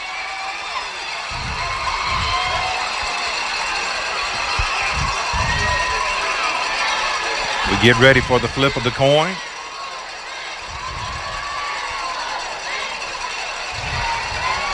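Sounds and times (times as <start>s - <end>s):
Luverne Tiger fans cheering: 0.0s - 14.7s
speech: 7.8s - 9.5s.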